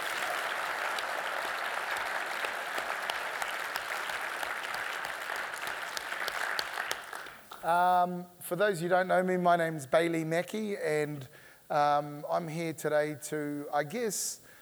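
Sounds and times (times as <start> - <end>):
audience applause: 0.0 - 7.6
speech: 7.6 - 14.4.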